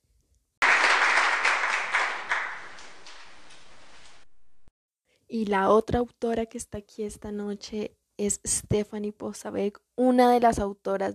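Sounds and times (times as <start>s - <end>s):
audience applause: 0.6s - 4.3s
speech: 5.3s - 11.1s.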